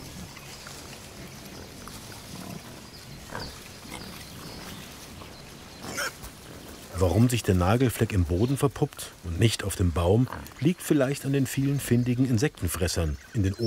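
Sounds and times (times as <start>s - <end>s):
rustling background: 0.0s - 12.9s
pigs grunting and snuffling: 0.0s - 13.6s
speech: 7.0s - 13.6s.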